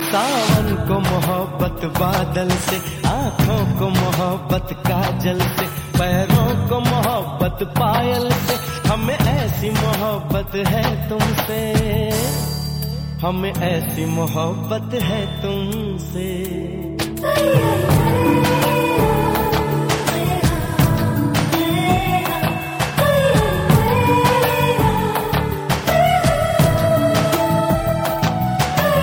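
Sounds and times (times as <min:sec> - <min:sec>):
romantic music: 0:00.0 - 0:29.0.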